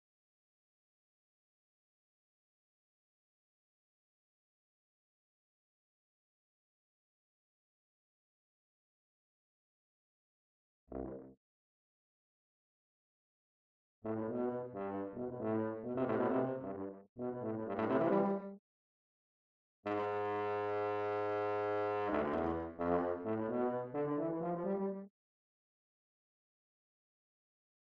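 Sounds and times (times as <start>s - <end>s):
tuba: 10.9s - 11.4s, 14.0s - 18.6s, 19.9s - 25.1s.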